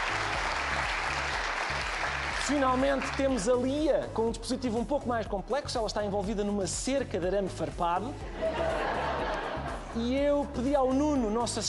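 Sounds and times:
applause: 0.0s - 3.6s
speech: 2.5s - 8.8s, 10.0s - 11.6s
laughter: 8.3s - 10.2s.

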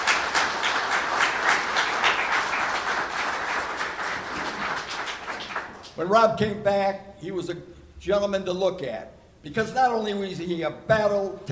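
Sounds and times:
audience applause: 0.0s - 6.0s
speech: 6.0s - 11.4s.

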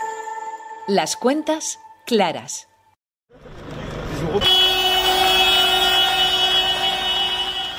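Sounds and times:
speech: 0.9s - 2.7s, 4.3s - 4.8s
tractor horns honking at farmer protest: 4.2s - 7.7s.

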